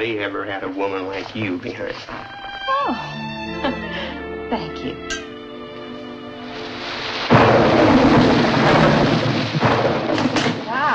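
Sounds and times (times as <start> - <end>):
speech: 0.0 - 5.2
heavy rain: 6.2 - 10.9
thunder: 6.6 - 10.9.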